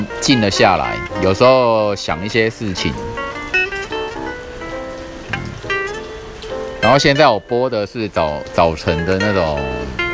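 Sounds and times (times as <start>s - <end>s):
rain falling: 0.0s - 10.1s
speech: 0.1s - 3.2s, 6.9s - 10.0s.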